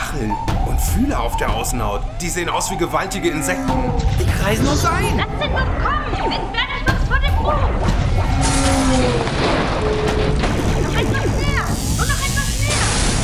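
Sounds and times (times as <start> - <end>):
speech: 0.2 - 6.7
spaceship struck by weapon fire with heavy booming blasts: 3.6 - 13.2.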